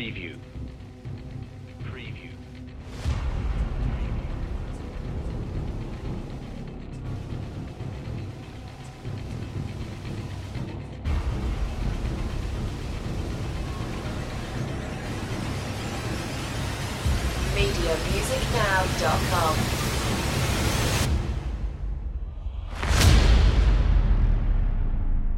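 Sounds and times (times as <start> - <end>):
percussion: 0.0 - 25.2
sound effects: 1.9 - 21.8.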